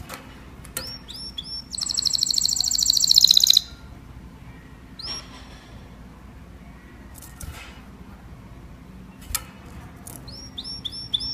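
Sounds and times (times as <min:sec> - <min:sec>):
canary song: 0:00.0 - 0:07.6, 0:08.2 - 0:11.3.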